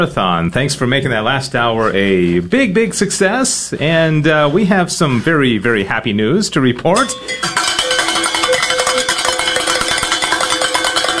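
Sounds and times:
speech: 0.0 - 7.6
hand bell being rung: 7.0 - 11.1.

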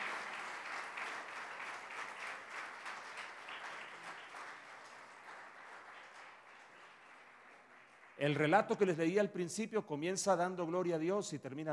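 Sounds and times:
audience applause: 0.0 - 8.4
speech: 8.2 - 11.7.

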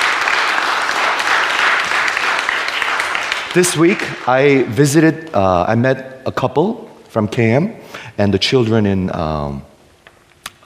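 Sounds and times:
audience applause: 0.0 - 5.0
speech: 3.6 - 9.7.

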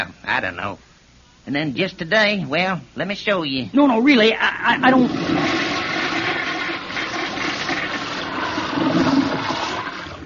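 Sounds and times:
speech: 0.0 - 5.6
toilet flushing: 4.8 - 10.2.

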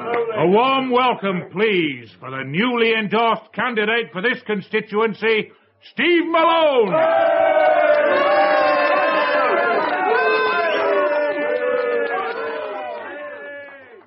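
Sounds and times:
speech: 0.2 - 8.3
crowd booing: 6.8 - 14.0.

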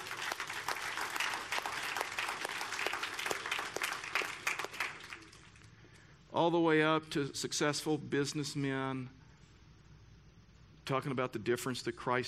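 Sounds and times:
room full of people applauding: 0.0 - 5.8
speech: 6.4 - 9.2, 10.9 - 12.2.

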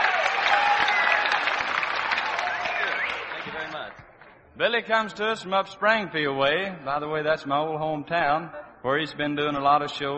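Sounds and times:
audience applause at a country music show: 0.0 - 3.9
speech: 4.6 - 10.1.

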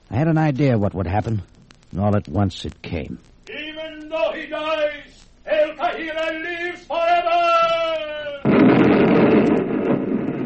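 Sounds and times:
speech: 0.2 - 3.3, 4.5 - 7.8
explosion blowing up a big warehouse: 8.4 - 10.4.

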